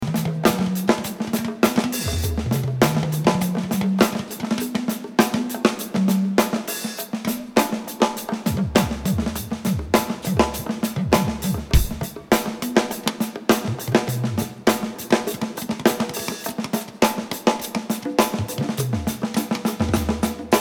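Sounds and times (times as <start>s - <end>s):
drums: 0.0s - 20.6s
bass: 11.3s - 12.1s.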